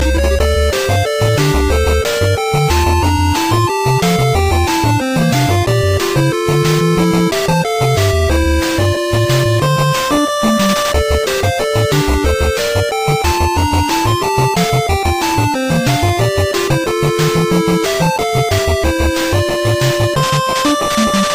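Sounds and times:
8-bit danger music: 0:00.0 - 0:21.3.

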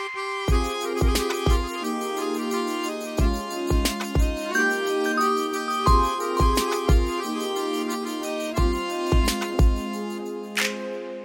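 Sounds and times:
sad Hindi melody: 0:00.2 - 0:11.2.

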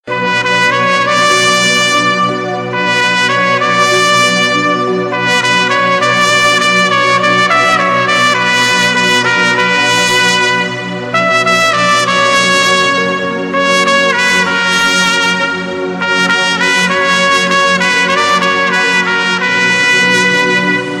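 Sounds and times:
sad trumpet: 0:00.1 - 0:20.9.

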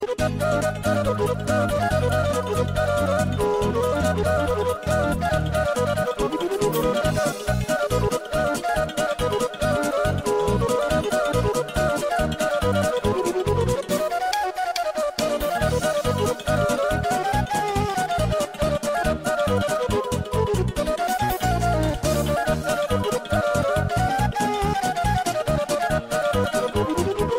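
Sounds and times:
caval flute playing a hora: 0:00.0 - 0:27.3.

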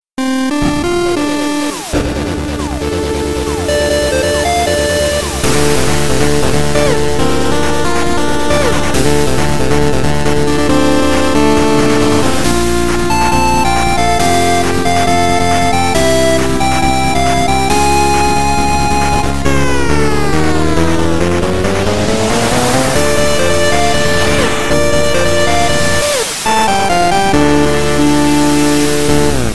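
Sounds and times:
8-bit chiptune: 0:00.2 - 0:29.5.

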